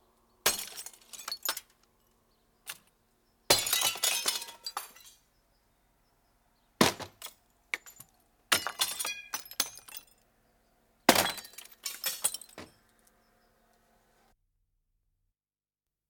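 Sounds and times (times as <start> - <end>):
stick breaking windows: 0.5 - 1.7, 3.5 - 5.2, 6.8 - 10.0, 11.1 - 12.8.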